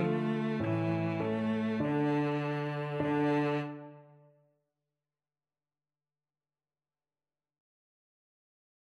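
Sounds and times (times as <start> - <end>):
cello: 0.0 - 4.2.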